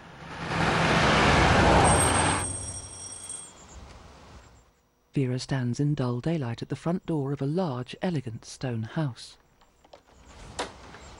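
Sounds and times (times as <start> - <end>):
car speeding along a country road: 0.0 - 2.9
speech: 5.2 - 9.4.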